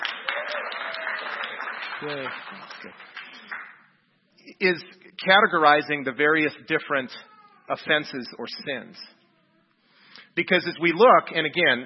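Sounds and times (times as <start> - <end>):
audience applause: 0.0 - 3.8
speech: 2.0 - 3.2, 4.6 - 9.2, 10.4 - 11.8.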